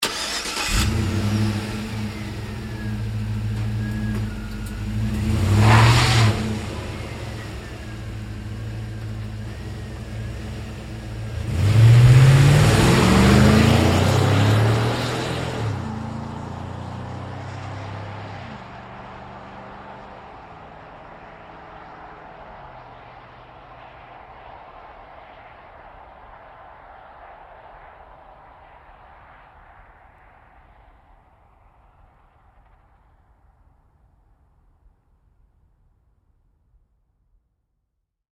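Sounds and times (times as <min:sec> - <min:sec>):
GMC Savana truck starting and driving away fast: 0:00.0 - 0:22.8.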